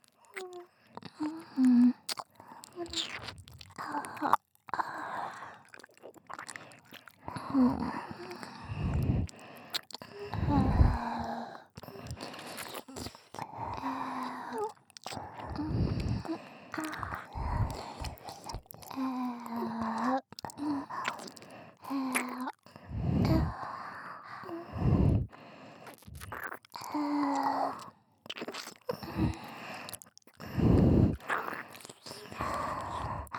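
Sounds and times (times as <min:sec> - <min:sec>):
ear licking only: 0:00.3 - 0:04.4, 0:05.3 - 0:13.8, 0:14.6 - 0:23.6, 0:24.5 - 0:33.3.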